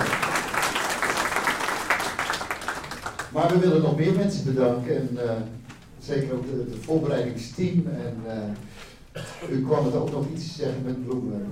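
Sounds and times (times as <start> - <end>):
applause at a community gathering thanking an organiser: 0.0 - 3.6
speech: 3.4 - 11.4.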